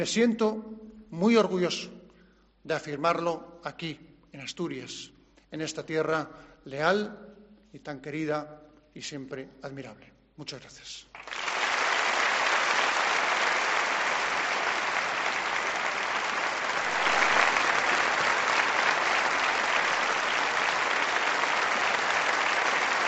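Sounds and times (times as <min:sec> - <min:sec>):
speech: 0:00.0 - 0:02.0, 0:02.6 - 0:11.4
theatre audience ovation: 0:11.2 - 0:23.0.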